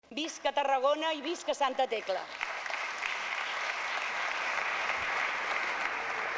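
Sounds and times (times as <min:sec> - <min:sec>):
speech: 0:00.2 - 0:02.5
audience applause: 0:02.4 - 0:06.3.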